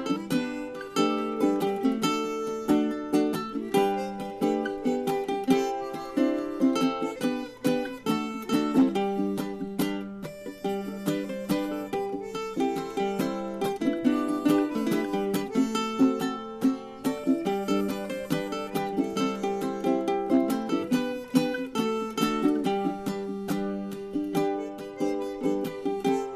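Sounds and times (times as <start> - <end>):
ukulele: 0.0 - 26.3.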